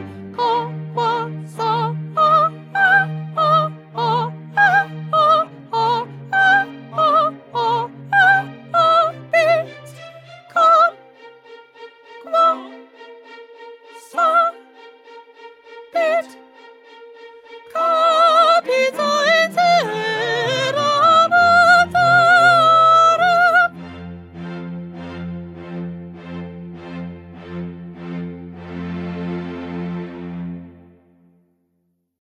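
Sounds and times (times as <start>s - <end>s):
first soprano singing: 0.0s - 25.6s.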